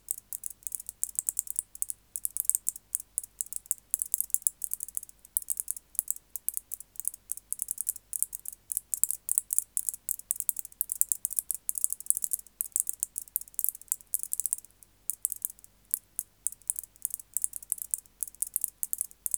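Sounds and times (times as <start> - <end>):
white-faced bush-cricket stridulating: 0.0 - 19.3.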